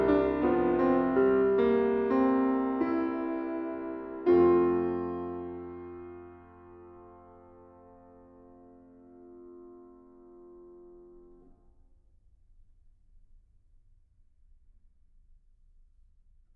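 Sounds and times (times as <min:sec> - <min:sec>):
keyboard prelude in F minor: 0:00.0 - 0:11.0.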